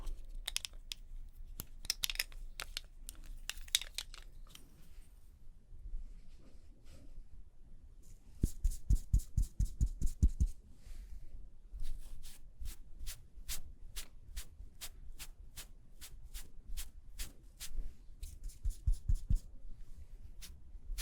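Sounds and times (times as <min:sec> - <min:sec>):
soft rubbing and shuffling while doing makeup: 0:04.6 - 0:07.3, 0:08.0 - 0:20.9
brushing or tapping: 0:08.4 - 0:10.6, 0:11.8 - 0:19.5, 0:20.4 - 0:20.9.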